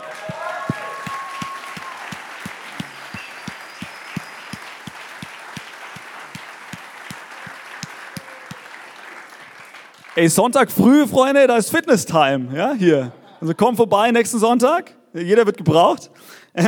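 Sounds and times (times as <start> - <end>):
audience applause: 0.0 - 10.4
speech: 10.2 - 16.6.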